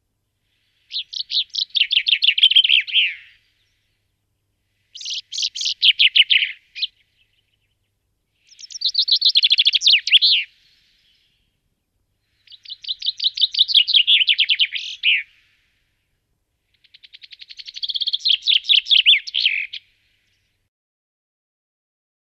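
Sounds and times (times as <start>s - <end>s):
common chaffinch calls: 0.8s - 3.5s, 4.9s - 7.4s, 8.4s - 11.2s, 12.3s - 15.5s, 16.8s - 19.9s.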